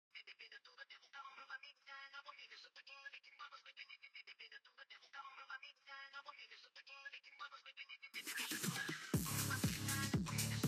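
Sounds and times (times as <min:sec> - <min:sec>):
phonk music: 0:08.2 - 0:10.6.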